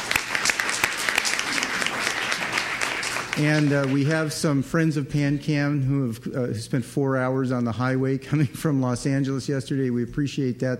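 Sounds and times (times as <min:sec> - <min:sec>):
audience applause: 0:00.0 - 0:04.3
speech: 0:03.4 - 0:10.7.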